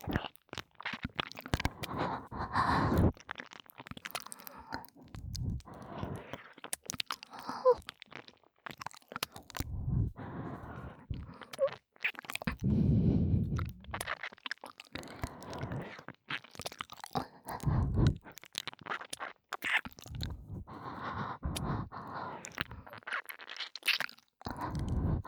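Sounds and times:
ear licking: 0.0 - 25.2
heavy breathing: 1.6 - 3.1, 4.4 - 6.3, 9.6 - 11.6, 12.5 - 14.0, 15.0 - 15.9, 17.2 - 18.2, 20.1 - 23.0, 24.5 - 25.2.

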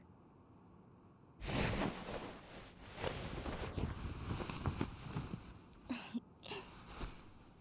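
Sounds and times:
ear cleaning in right ear: 1.4 - 5.9, 6.7 - 7.5.

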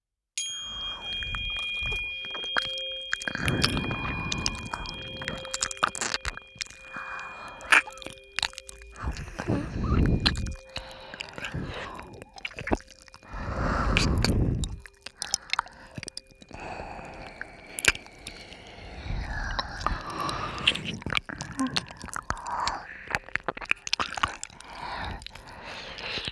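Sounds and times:
tuning fork ringing: 0.4 - 19.4
ear licking: 0.7 - 26.3.

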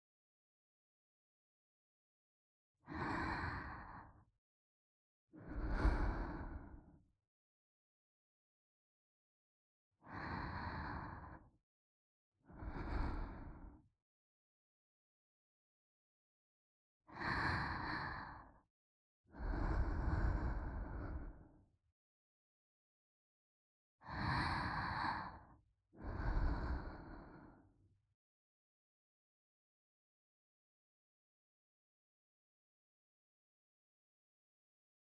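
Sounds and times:
woman breathing slowly in place of a lullaby: 2.9 - 4.2, 5.4 - 6.9, 10.0 - 11.4, 12.5 - 13.8, 17.1 - 18.6, 19.3 - 21.6, 24.0 - 27.7.

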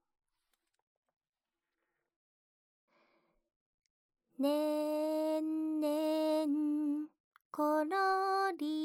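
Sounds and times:
person singing a lullaby: 4.4 - 8.8.

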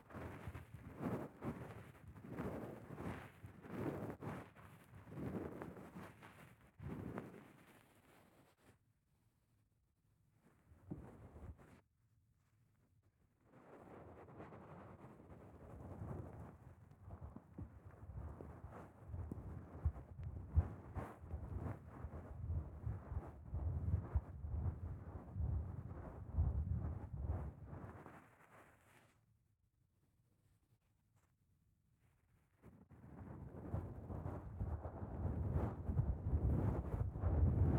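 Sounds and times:
fluffy glove massage: 0.0 - 8.7, 13.5 - 29.2, 33.0 - 37.7.

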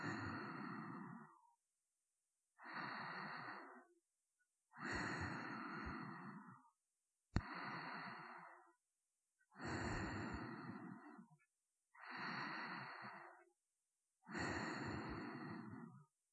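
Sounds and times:
sleeping breathing: 0.0 - 1.4, 2.6 - 3.9, 4.7 - 6.6, 7.4 - 8.8, 9.6 - 11.3, 12.0 - 13.4, 14.3 - 16.0.

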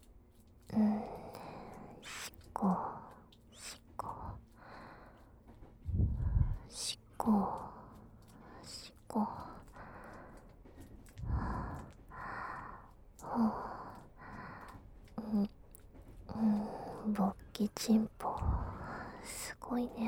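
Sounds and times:
ear licking on a train: 0.0 - 15.9
person whispering on a train: 0.7 - 4.5, 5.9 - 9.8, 11.2 - 12.0, 13.2 - 14.0, 15.2 - 15.6, 16.3 - 20.0.

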